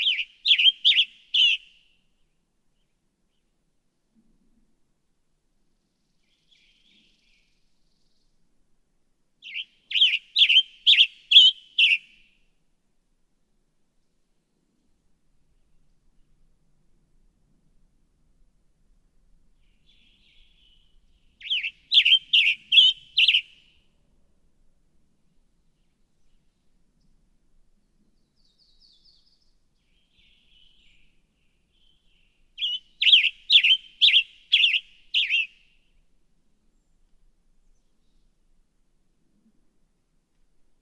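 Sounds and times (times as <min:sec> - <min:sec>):
Western Tanager: 0:00.0 - 0:01.7, 0:09.4 - 0:12.1, 0:21.4 - 0:23.7, 0:31.8 - 0:35.8.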